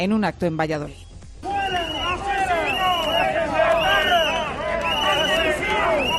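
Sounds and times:
speech: 0:00.0 - 0:01.0
crowd booing a minister: 0:01.4 - 0:06.1.

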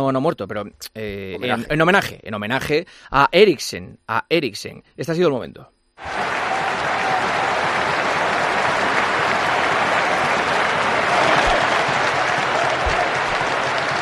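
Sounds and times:
speech: 0:00.0 - 0:06.2
stadium crowd applauding in Copenhagen: 0:06.0 - 0:14.0.

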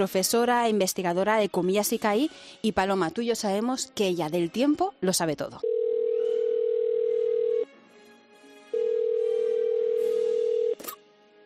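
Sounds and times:
speech: 0:00.0 - 0:05.7
telephone tone while a call is placed: 0:05.6 - 0:07.6, 0:08.8 - 0:10.8.

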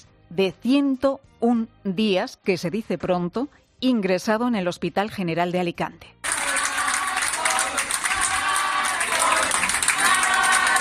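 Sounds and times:
speech: 0:00.3 - 0:06.2
doctors and nurses applauding: 0:06.2 - 0:10.7
doctors and nurses chanting a name: 0:06.2 - 0:10.7.

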